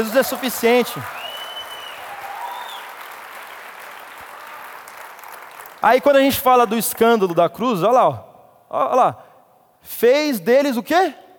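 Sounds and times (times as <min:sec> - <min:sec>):
speech: 0:00.0 - 0:01.2, 0:05.8 - 0:09.2, 0:09.8 - 0:11.2
audience applauding: 0:00.0 - 0:06.2.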